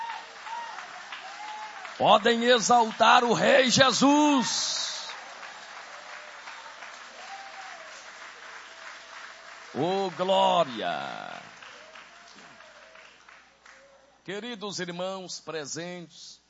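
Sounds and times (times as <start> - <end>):
audience applauding: 0.0 - 13.9
speech: 2.0 - 4.9, 9.8 - 11.4, 14.3 - 16.4
man calling out: 2.0 - 5.2, 9.8 - 11.6.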